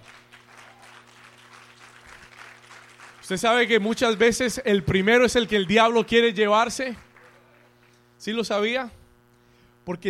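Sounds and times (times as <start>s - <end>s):
audience applause: 0.0s - 4.6s, 6.9s - 7.9s
speech: 3.3s - 7.1s, 8.2s - 9.0s, 9.8s - 10.0s.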